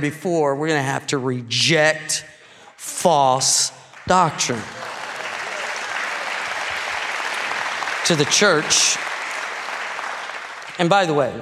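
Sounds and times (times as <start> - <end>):
speech: 0.0 - 4.8, 8.1 - 9.1, 10.8 - 11.4
audience clapping: 2.9 - 11.4.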